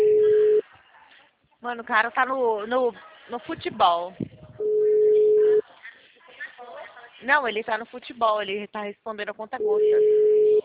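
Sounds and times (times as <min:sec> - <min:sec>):
telephone ringback tone while waiting for an answer: 0:00.0 - 0:00.6, 0:04.6 - 0:05.6, 0:09.6 - 0:10.6
speech: 0:01.6 - 0:04.3, 0:07.2 - 0:10.4.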